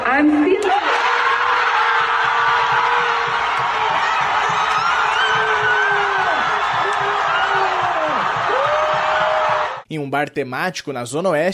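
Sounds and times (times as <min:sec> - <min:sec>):
large crowd of Brazilian fans cheering and shouting in celebration of Oscar win: 0:00.0 - 0:09.8
speech: 0:00.2 - 0:00.6, 0:10.1 - 0:11.5
whoops and excited yelling: 0:00.8 - 0:09.8.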